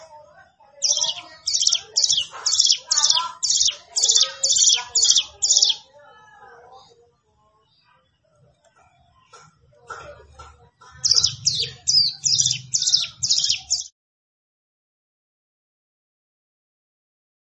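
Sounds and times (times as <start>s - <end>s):
plain prinia song: 0.6s - 6.0s, 10.8s - 13.9s.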